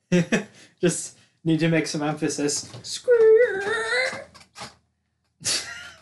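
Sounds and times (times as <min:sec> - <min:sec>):
speech: 0:00.1 - 0:03.8
office chair squeaking: 0:02.5 - 0:04.8.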